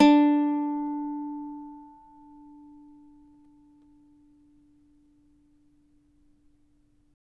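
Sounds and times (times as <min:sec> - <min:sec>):
cavaquinho D chord: 0:00.0 - 0:04.4.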